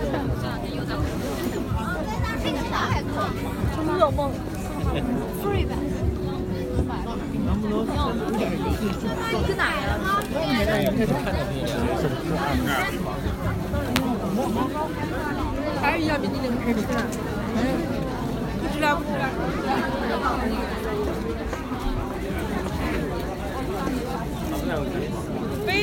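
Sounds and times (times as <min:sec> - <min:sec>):
crowd babble in Nanluoguxiang lane: 0:00.0 - 0:25.8.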